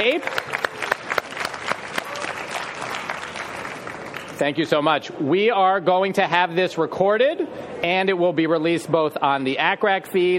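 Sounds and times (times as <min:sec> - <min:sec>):
live audience applauding at the ASA 2023 meeting: 0:00.0 - 0:04.4
speech: 0:00.1 - 0:00.4, 0:04.4 - 0:10.3.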